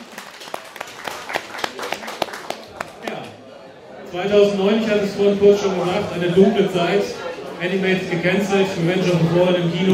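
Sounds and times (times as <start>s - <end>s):
scattered audience clapping at a Transformers fan convention: 0.0s - 3.4s
speech: 4.1s - 9.9s.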